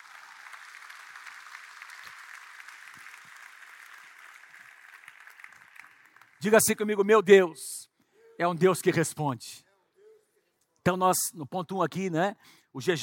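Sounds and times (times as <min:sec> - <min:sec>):
audience applauding: 0:00.0 - 0:06.5
speech: 0:06.4 - 0:07.8, 0:08.4 - 0:09.6, 0:10.8 - 0:13.0.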